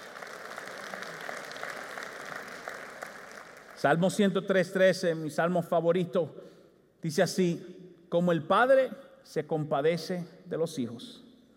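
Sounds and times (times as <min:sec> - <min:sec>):
crowd applauding: 0:00.0 - 0:04.2
speech: 0:03.8 - 0:11.2.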